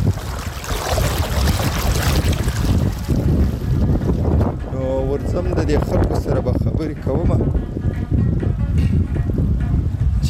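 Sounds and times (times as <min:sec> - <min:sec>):
water of a small clear stream rushing: 0:00.0 - 0:03.7
wind buffeting the microphone: 0:00.0 - 0:10.2.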